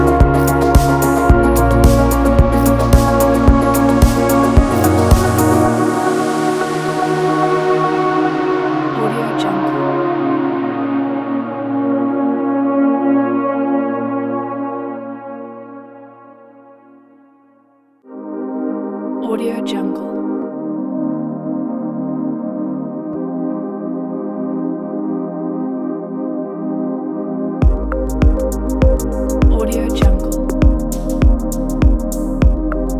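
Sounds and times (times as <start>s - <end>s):
minimal electronic music: 0.0s - 16.9s, 18.1s - 32.9s.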